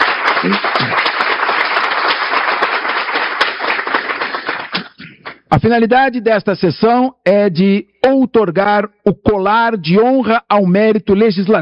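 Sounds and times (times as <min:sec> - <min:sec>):
audience applause: 0:00.0 - 0:05.5
speech: 0:00.4 - 0:00.8, 0:05.6 - 0:11.6.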